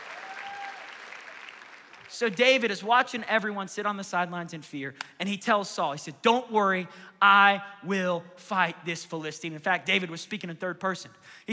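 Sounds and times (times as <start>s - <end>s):
audience applause: 0.0s - 2.4s
speech: 2.1s - 11.5s.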